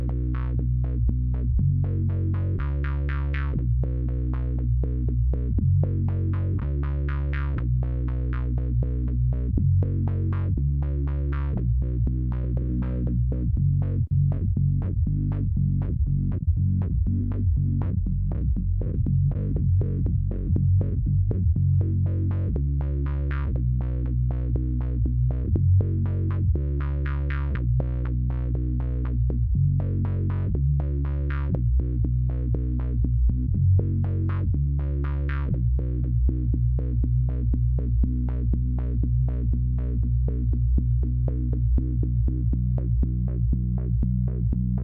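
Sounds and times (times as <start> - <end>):
bass through filter LFO: 0.0 - 44.8.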